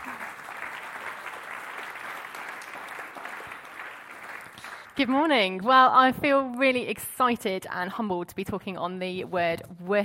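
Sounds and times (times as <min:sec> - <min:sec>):
church congregation applause welcoming a speaker forward: 0:00.0 - 0:05.0
speech: 0:05.0 - 0:10.0.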